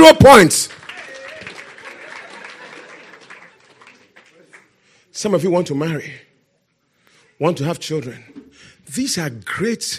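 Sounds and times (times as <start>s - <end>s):
speech: 0.0s - 0.8s, 5.2s - 6.2s, 7.4s - 9.9s
audience clapping: 0.3s - 4.8s.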